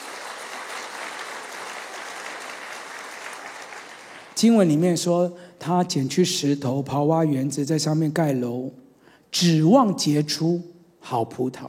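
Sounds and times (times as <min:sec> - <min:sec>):
audience clapping hands: 0:00.0 - 0:04.7
speech: 0:04.4 - 0:11.6.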